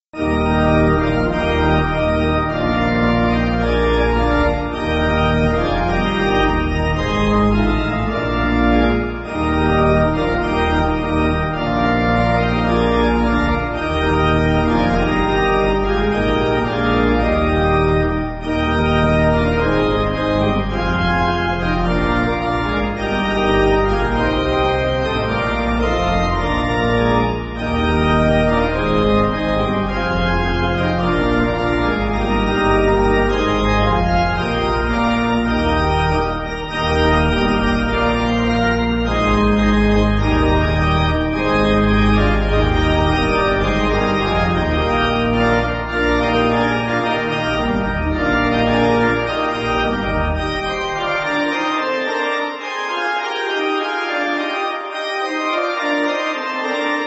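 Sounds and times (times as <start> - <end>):
church pipe organ backing music: 0.2 - 57.0.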